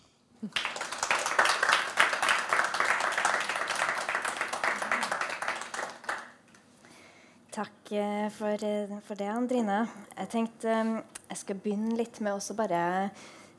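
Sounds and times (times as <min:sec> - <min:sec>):
speech: 0:00.4 - 0:00.7, 0:07.6 - 0:13.5
audience applause: 0:00.5 - 0:06.4.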